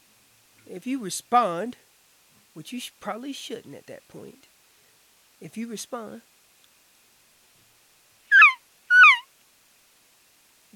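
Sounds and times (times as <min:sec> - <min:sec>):
speech: 0:00.7 - 0:01.9, 0:02.6 - 0:04.5, 0:05.4 - 0:06.3
cow elk calls: 0:08.3 - 0:09.3.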